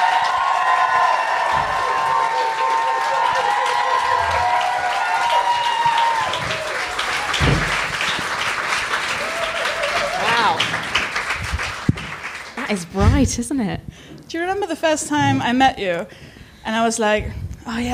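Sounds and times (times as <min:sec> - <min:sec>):
studio audience cheering and whoops: 0:00.0 - 0:07.5, 0:09.1 - 0:10.7
studio audience applause: 0:00.0 - 0:12.9
speech: 0:12.7 - 0:17.9.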